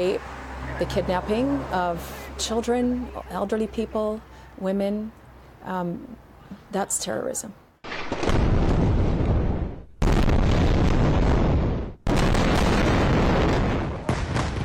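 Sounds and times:
speech: 0:00.0 - 0:08.2
heavy explosions from rocket bombardment: 0:07.8 - 0:14.6.

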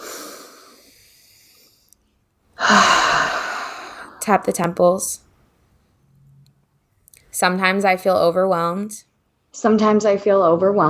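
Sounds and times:
person taking a deep breath during a guided relaxation: 0:00.0 - 0:01.8, 0:02.6 - 0:05.2
speech: 0:02.7 - 0:03.0, 0:04.3 - 0:05.2, 0:07.4 - 0:10.8.

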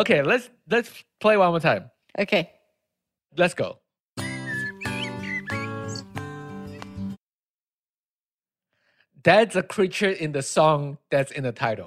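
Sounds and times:
speech: 0:00.0 - 0:02.6, 0:03.3 - 0:03.8, 0:09.2 - 0:11.8
birds squeaking: 0:04.2 - 0:06.4.

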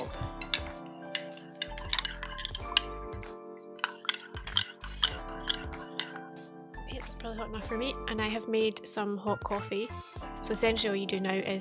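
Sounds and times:
spoon stirring in a mug: 0:00.0 - 0:06.3
speech: 0:07.4 - 0:11.5.

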